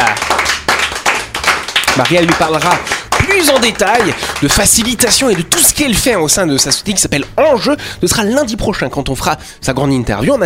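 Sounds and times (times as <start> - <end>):
audience applause: 0.0 - 5.4
speech: 2.0 - 10.4.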